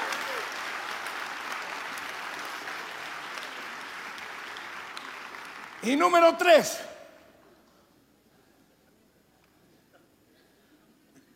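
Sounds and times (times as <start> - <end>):
audience applauding: 0.0 - 6.8
speech: 5.8 - 6.9.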